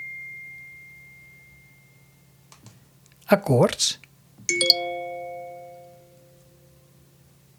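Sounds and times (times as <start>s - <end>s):
speech: 3.3s - 4.7s
phone notification tone: 4.5s - 6.3s.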